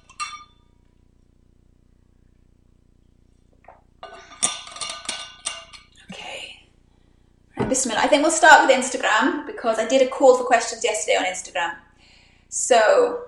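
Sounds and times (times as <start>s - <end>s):
glass being picked up and drunk from: 0.0s - 0.6s, 3.6s - 6.1s
glass clinking: 0.0s - 0.7s, 3.7s - 6.1s
speech: 7.7s - 11.8s, 12.5s - 13.2s.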